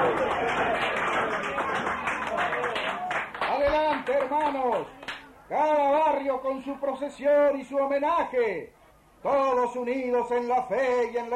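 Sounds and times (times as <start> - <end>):
crowd applause at a procession: 0.0 - 5.2
speech: 4.1 - 11.3.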